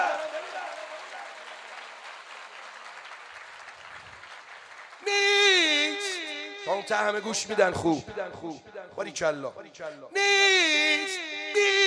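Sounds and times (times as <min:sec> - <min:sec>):
large audience clapping: 0:00.0 - 0:06.7
speech: 0:06.8 - 0:11.8.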